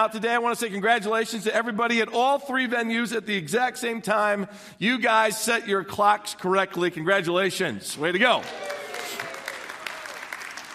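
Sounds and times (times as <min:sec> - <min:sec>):
speech: 0:00.0 - 0:08.8
audience applause: 0:08.2 - 0:10.7.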